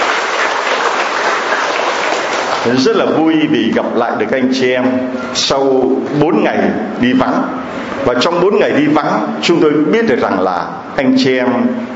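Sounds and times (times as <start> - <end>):
warm applause from a crowded congregation: 0.0 - 2.8
speech: 2.6 - 11.9.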